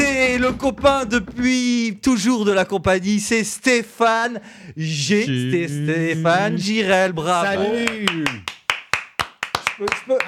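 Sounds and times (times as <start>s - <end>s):
speech: 0.4s - 8.5s, 9.8s - 10.2s
man clapping: 7.6s - 10.2s.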